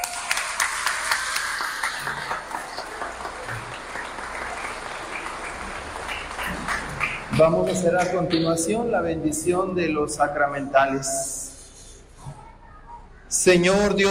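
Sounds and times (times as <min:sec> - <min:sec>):
applause from a congregation during a church service: 0:00.0 - 0:08.4
speech: 0:07.4 - 0:11.4, 0:13.4 - 0:14.0.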